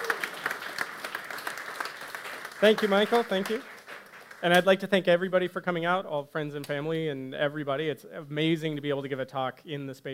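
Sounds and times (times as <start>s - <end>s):
round of applause: 0.0s - 4.8s
speech: 2.6s - 3.7s, 4.4s - 10.1s.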